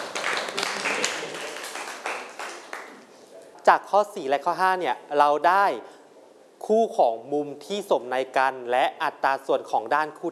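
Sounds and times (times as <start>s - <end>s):
classroom clapping: 0.0s - 3.1s
speech: 3.7s - 5.9s, 6.7s - 10.3s.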